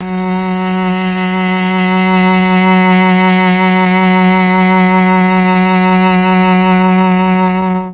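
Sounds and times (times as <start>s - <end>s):
Mellotron cello F#3 note: 0.0s - 7.9s.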